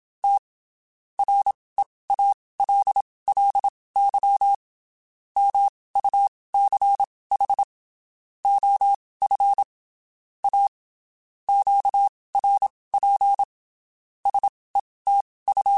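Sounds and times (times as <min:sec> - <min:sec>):
Morse code CW code groups on ham radio: 0:00.2 - 0:00.4, 0:01.2 - 0:04.6, 0:05.4 - 0:07.7, 0:08.4 - 0:09.7, 0:11.5 - 0:13.5, 0:14.2 - 0:15.7.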